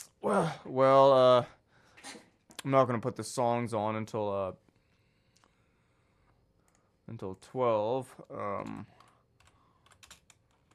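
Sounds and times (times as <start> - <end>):
speech: 0.2 - 4.6, 7.1 - 9.0
computer keyboard typing: 8.6 - 10.7.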